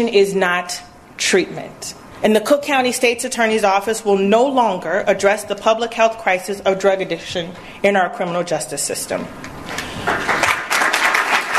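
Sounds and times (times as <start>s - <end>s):
speech: 0.0s - 10.3s
halting audience applause at a speech on drug addiction policy: 10.0s - 11.5s.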